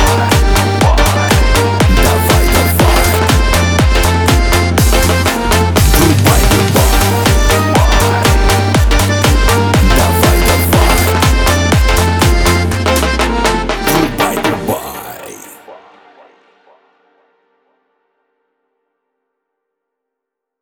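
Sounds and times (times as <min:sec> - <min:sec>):
lezginka dance music: 0:00.0 - 0:15.6.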